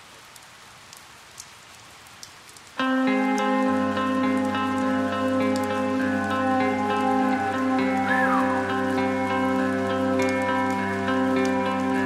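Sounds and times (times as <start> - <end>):
rain sound effect in a song: 0.0 - 12.0
sustained musical chords: 2.8 - 12.0.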